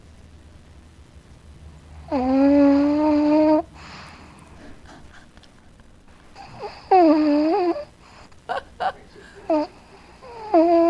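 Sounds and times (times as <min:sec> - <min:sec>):
pug dog snoring: 0:01.9 - 0:04.2, 0:06.4 - 0:08.3, 0:09.5 - 0:10.8
laughter: 0:08.5 - 0:09.5.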